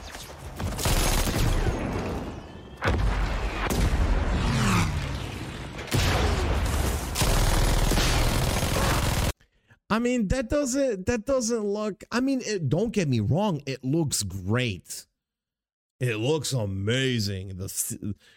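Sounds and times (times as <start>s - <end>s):
video game gunfire: 0.0s - 9.3s
video game grenade explosions: 0.0s - 9.4s
speech: 10.0s - 15.1s, 16.0s - 18.3s.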